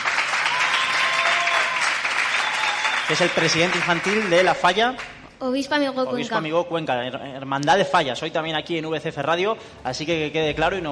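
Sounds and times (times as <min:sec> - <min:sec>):
audience applause: 0:00.0 - 0:05.1
speech: 0:03.1 - 0:10.9.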